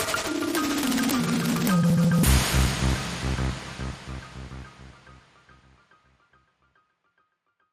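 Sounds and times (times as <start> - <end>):
pastoral music sting: 0.2 - 5.2.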